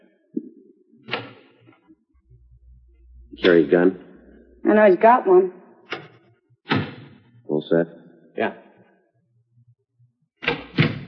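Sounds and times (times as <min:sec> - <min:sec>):
soft low thumps: 0:02.2 - 0:05.4
speech: 0:03.4 - 0:04.0, 0:04.6 - 0:05.6, 0:07.7 - 0:08.6
door being unlocked: 0:10.4 - 0:11.0.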